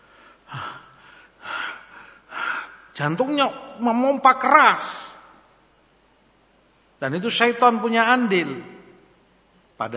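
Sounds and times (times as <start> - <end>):
voice imitating the heavy panting of an angry person: 0.0 - 2.9
speech: 3.0 - 5.1, 7.0 - 8.8, 9.8 - 9.9.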